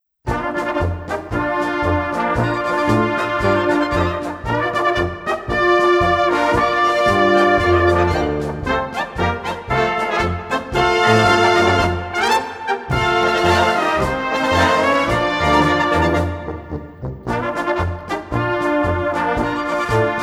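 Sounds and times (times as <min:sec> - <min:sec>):
polka music: 0:00.3 - 0:20.2.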